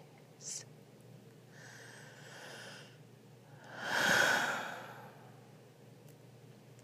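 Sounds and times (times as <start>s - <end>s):
heavy breathing: 1.5s - 3.0s, 3.7s - 5.3s.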